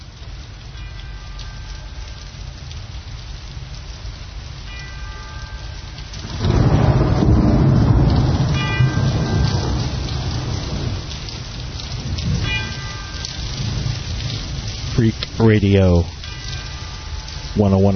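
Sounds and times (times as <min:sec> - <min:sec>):
heavy rain: 0:00.0 - 0:17.9
low thunder rumbling: 0:05.4 - 0:17.9
speech: 0:15.4 - 0:16.2, 0:17.6 - 0:17.9.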